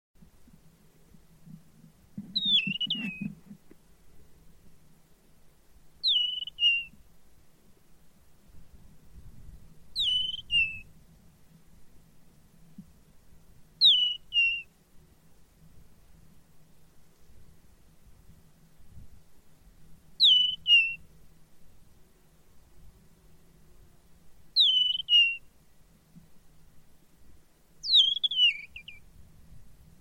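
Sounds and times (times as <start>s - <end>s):
bird whistled calls: 2.3s - 3.4s, 6.0s - 6.9s, 10.0s - 10.8s, 13.8s - 14.7s, 20.2s - 21.0s, 24.6s - 25.4s, 27.8s - 29.0s.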